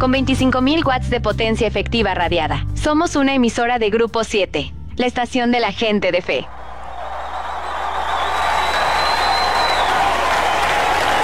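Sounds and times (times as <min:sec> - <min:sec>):
speech: 0:00.0 - 0:06.6
applause: 0:06.5 - 0:11.2.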